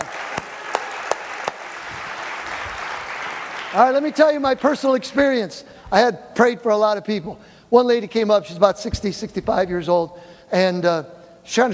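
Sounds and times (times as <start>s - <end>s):
audience clapping: 0.0s - 4.7s
speech: 3.7s - 11.7s.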